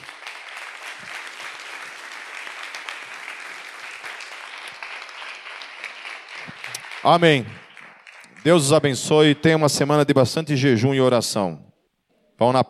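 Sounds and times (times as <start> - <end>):
audience applause: 0.0 - 9.4
speech: 7.0 - 7.6, 8.4 - 11.7, 12.4 - 12.6.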